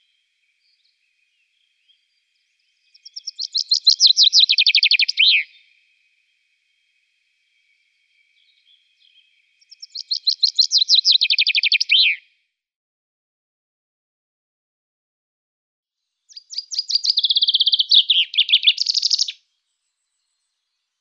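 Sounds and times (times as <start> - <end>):
common chaffinch singing: 0.0 - 6.0, 7.5 - 12.3, 16.3 - 20.9.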